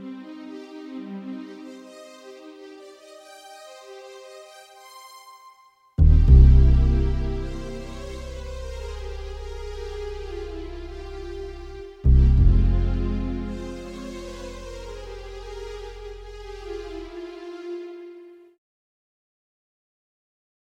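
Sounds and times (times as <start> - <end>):
string adagio bass part: 6.0 - 17.3.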